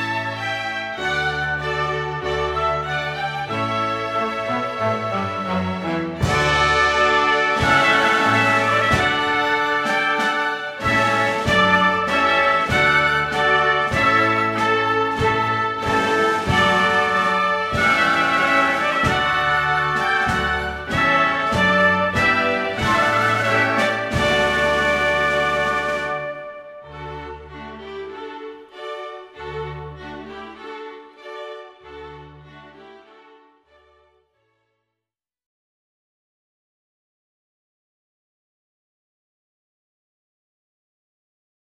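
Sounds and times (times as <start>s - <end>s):
trumpet piece: 0.0s - 29.6s.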